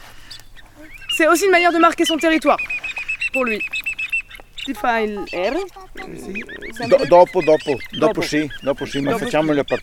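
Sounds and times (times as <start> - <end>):
blackbird chirping: 0.0 - 9.8
speech: 0.8 - 3.8, 4.7 - 9.8
person calling out drawn-out syllables: 4.8 - 7.0.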